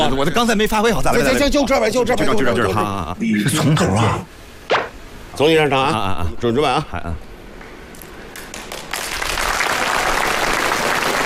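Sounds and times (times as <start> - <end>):
speech: 0.1 - 4.4, 5.4 - 7.3
stage-show audience applause: 8.4 - 11.2.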